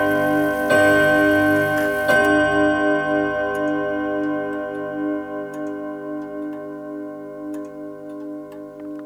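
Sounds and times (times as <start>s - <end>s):
gong: 0.0s - 5.5s.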